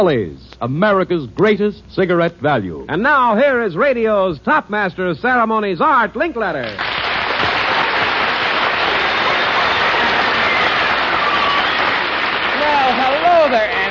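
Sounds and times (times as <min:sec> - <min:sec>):
speech: 0:00.0 - 0:07.0
audience applause: 0:06.6 - 0:13.8.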